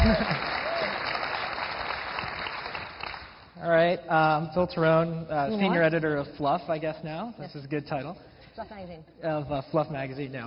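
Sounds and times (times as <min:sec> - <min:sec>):
audience applause: 0:00.0 - 0:03.4
speech: 0:03.9 - 0:10.4.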